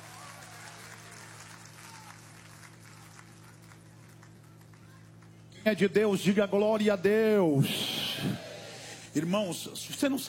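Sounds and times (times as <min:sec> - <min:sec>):
church audience applauding: 0:00.0 - 0:05.4
speech: 0:05.6 - 0:08.4, 0:09.2 - 0:10.2.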